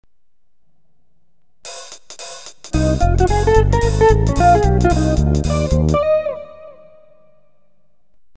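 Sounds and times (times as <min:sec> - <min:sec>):
jazz music: 0:02.6 - 0:07.1.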